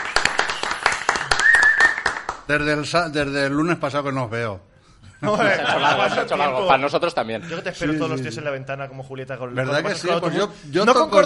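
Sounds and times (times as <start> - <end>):
group of people applauding: 0.0 - 2.6
sustained high-pitched cheer or whistle: 0.2 - 2.3
speech: 2.5 - 11.2
laughter: 5.1 - 7.7.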